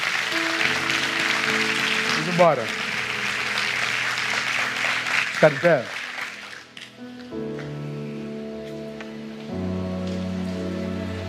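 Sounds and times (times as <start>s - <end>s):
audience applause: 0.0s - 7.0s
held keyboard chords: 0.0s - 11.2s
speech: 2.4s - 2.8s, 5.4s - 6.0s.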